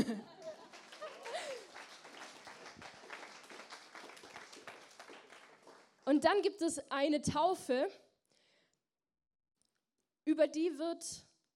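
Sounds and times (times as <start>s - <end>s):
laughter: 0.0s - 2.0s
audience clapping: 0.0s - 6.2s
speech: 6.1s - 8.0s, 10.3s - 11.3s.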